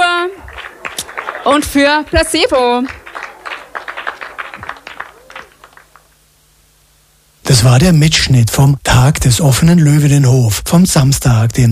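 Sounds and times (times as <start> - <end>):
audience applause for performers: 0.1 - 6.2
speech: 1.4 - 3.0, 7.6 - 11.6.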